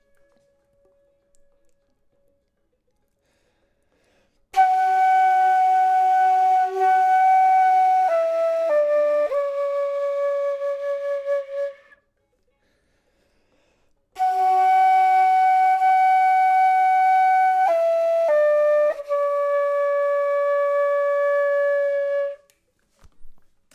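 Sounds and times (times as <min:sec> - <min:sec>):
flute: 0:00.0 - 0:02.0, 0:04.6 - 0:12.2, 0:14.2 - 0:22.7.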